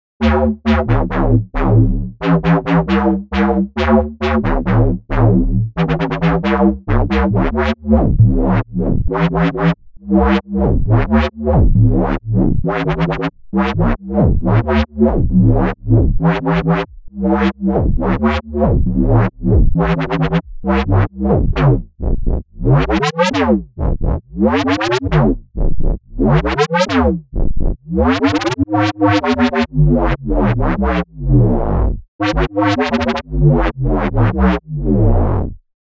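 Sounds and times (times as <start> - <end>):
synth bass: 0.2 - 35.7.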